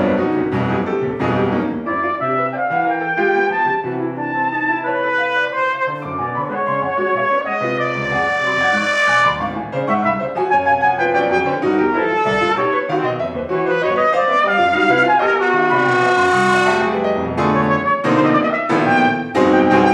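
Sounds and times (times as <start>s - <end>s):
piano: 0.0s - 19.9s
trombone: 0.0s - 19.9s.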